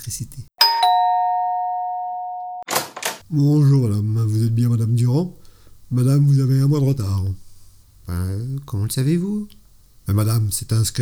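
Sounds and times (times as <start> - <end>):
speech: 0.0 - 0.5, 3.3 - 7.4, 8.1 - 11.0
two-note doorbell chime at a couple's home: 0.6 - 2.6.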